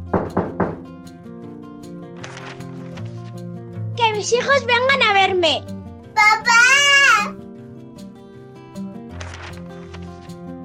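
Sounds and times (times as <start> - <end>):
knocking on a door: 0.0 - 1.0
speech: 4.0 - 7.0.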